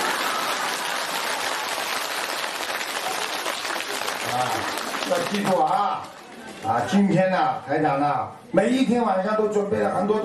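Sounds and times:
audience applause: 0.0 - 6.3
speech: 4.4 - 10.2.

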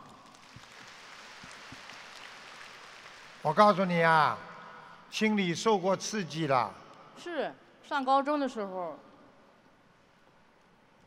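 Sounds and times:
clapping applause: 0.0 - 3.8
speech: 3.4 - 4.5, 5.1 - 9.1.

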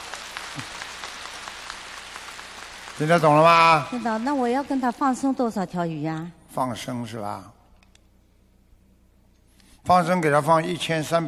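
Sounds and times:
people clapping: 0.0 - 5.4
speech: 0.6 - 0.8, 3.0 - 7.6, 9.8 - 11.2.

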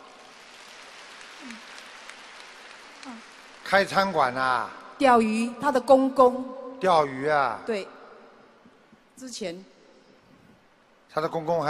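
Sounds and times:
audience applause: 0.0 - 4.5
speech: 1.4 - 1.7, 3.0 - 8.0, 9.2 - 9.7, 11.1 - 11.6.

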